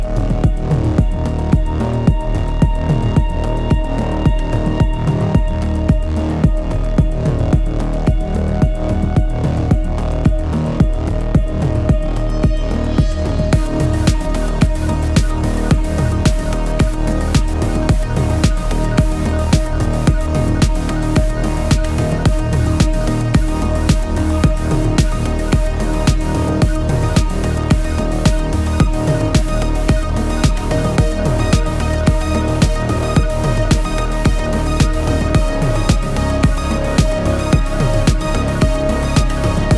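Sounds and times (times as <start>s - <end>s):
electronic ambient music: 0.0s - 39.7s.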